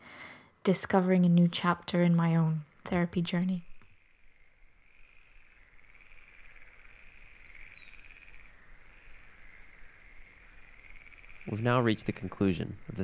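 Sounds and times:
speech: 0.7 - 3.7, 11.5 - 13.0
frogs croaking: 2.7 - 13.0.

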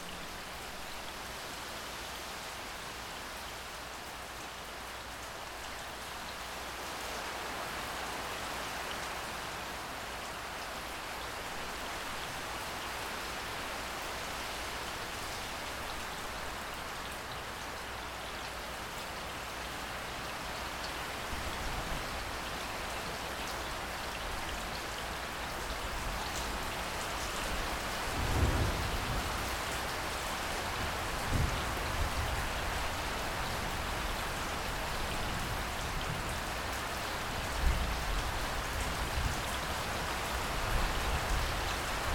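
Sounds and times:
steady rain: 0.0 - 42.1.

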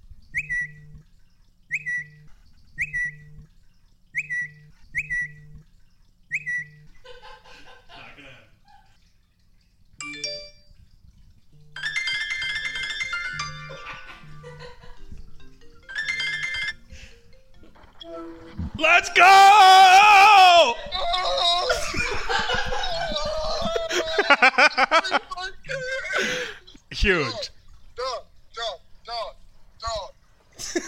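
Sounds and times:
phone going off with alerts: 0.4 - 1.0, 1.7 - 3.5, 4.2 - 5.6, 6.3 - 7.0, 11.5 - 19.4
laughter: 7.0 - 8.4, 13.6 - 15.1, 20.5 - 26.6
speech: 18.9 - 19.8, 24.6 - 26.4, 27.0 - 27.6.

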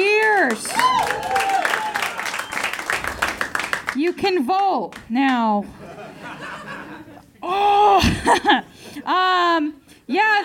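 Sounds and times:
audience applause for performers introduced on stage at a live show: 0.2 - 4.0
speech: 0.5 - 1.4, 4.0 - 5.8, 7.4 - 10.4
laughter: 5.7 - 8.7.

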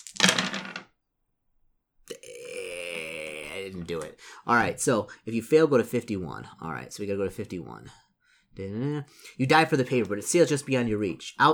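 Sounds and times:
dice rattling and clattering: 0.0 - 0.9
speech: 3.6 - 8.0, 8.6 - 11.5.

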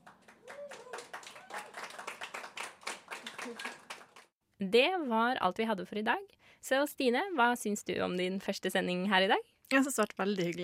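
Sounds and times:
applause: 0.0 - 4.4
speech: 3.5 - 3.8, 4.6 - 10.6.

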